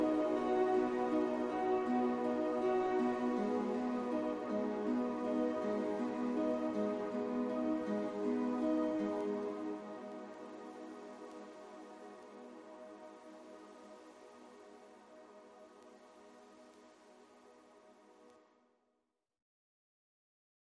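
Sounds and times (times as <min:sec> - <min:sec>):
simple synth: 0:00.0 - 0:15.8.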